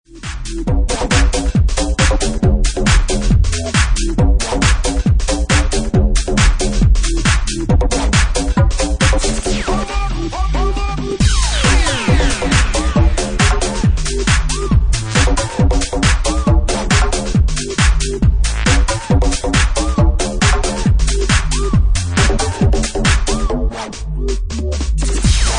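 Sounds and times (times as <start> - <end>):
bassline: 0.0 - 25.5.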